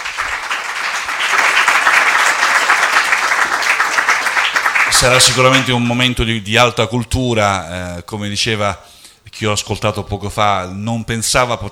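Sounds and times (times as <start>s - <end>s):
audience applause: 0.0s - 5.9s
speech: 5.0s - 11.7s.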